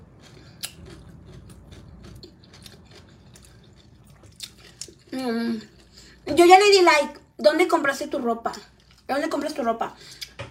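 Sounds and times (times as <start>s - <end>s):
chewing food: 0.0s - 6.3s, 8.5s - 9.1s
speech: 5.2s - 5.7s, 6.3s - 10.2s.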